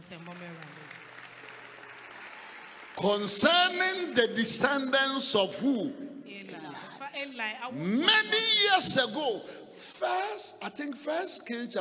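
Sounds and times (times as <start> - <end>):
audience clapping: 0.0 - 5.0
speech: 3.0 - 11.8.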